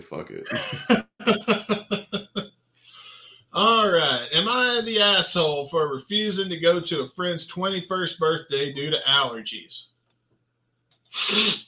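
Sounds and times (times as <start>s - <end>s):
speech: 0.0s - 1.7s, 3.6s - 9.9s, 11.1s - 11.6s
laughter: 0.4s - 2.4s, 3.6s - 9.4s
person sniffling into the microphone: 11.2s - 11.6s.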